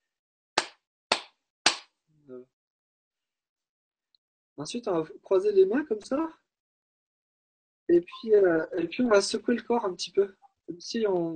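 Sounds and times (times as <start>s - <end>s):
hands clapping as part of a simple exercise: 0.6s - 1.9s
speech: 2.3s - 2.6s, 4.6s - 6.4s, 7.9s - 11.3s.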